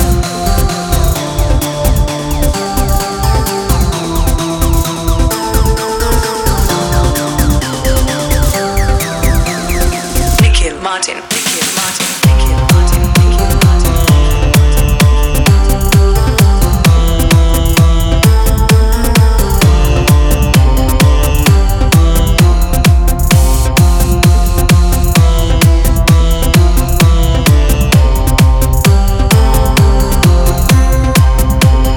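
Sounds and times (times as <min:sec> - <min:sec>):
Indian style instrumental music: 0:00.0 - 0:31.9.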